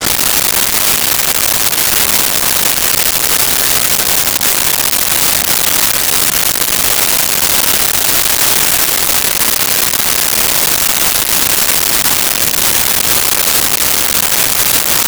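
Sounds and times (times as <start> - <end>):
fire: 0.0 - 15.0.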